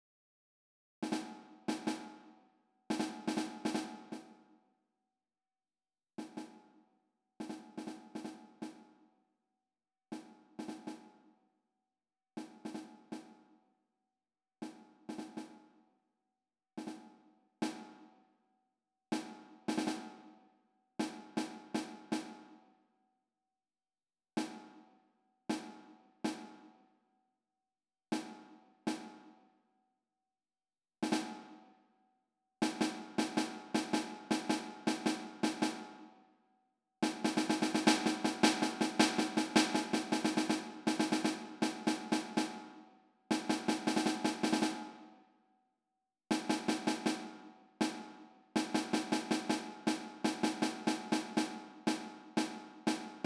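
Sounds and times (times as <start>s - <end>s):
snare drum: 1.0s - 2.3s, 2.9s - 4.4s, 6.2s - 6.6s, 7.4s - 8.9s, 10.2s - 11.1s, 12.4s - 13.4s, 14.6s - 15.6s, 16.8s - 18.0s, 19.1s - 20.3s, 21.0s - 22.5s, 24.4s - 24.7s, 25.5s - 26.6s, 28.1s - 29.3s, 31.0s - 31.6s, 32.6s - 36.1s, 37.0s - 45.0s, 46.3s - 53.2s.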